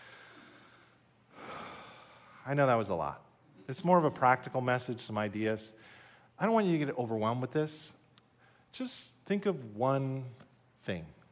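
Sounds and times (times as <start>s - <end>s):
slow deep breath during a sermon: 0.0s - 2.4s, 5.8s - 6.4s
speech: 2.4s - 8.0s, 8.7s - 11.2s.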